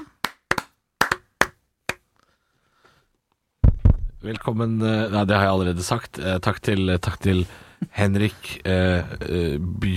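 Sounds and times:
hand claps: 0.0 - 2.1
speech: 4.2 - 9.9.

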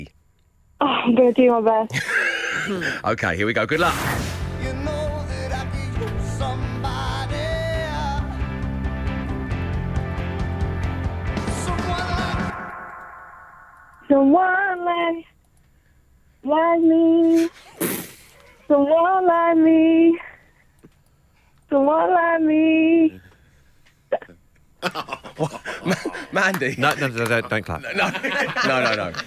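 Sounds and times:
speech: 0.8 - 4.2, 14.1 - 15.3, 16.4 - 17.6, 18.7 - 20.3, 21.7 - 23.2, 24.1 - 29.2
loud rock song with thick guitars and sung vocals: 4.4 - 13.2
laughter: 24.8 - 29.2.

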